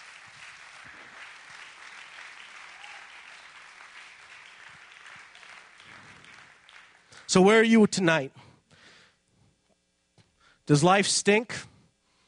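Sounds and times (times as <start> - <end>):
crowd clapping in a large room: 0.0 - 7.6
speech: 7.3 - 8.4, 10.7 - 11.7.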